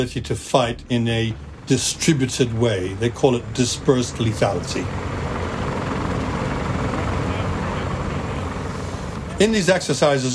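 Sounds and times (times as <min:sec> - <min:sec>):
speech: 0:00.0 - 0:05.1, 0:09.4 - 0:10.3
helicopters taking off into the jungle: 0:00.0 - 0:10.3.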